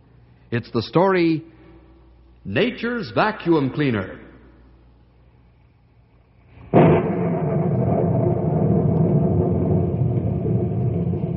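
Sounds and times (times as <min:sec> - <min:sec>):
speech: 0:00.5 - 0:01.5, 0:02.4 - 0:04.3
thunderclap and rumble of thunder: 0:06.7 - 0:11.3.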